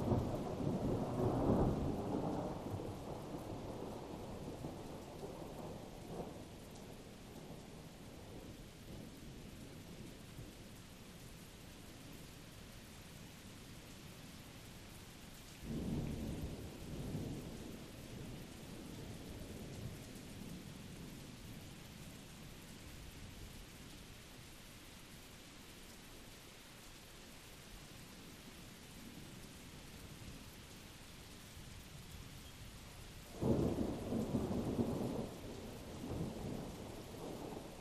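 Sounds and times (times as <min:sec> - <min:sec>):
continuous thunder at Blue Mountain Lake Adirondacks New York: 0:00.0 - 0:10.7, 0:15.6 - 0:22.6, 0:33.3 - 0:37.7
rain at Blue Mountain Lake Adirondacks New York: 0:00.0 - 0:37.7.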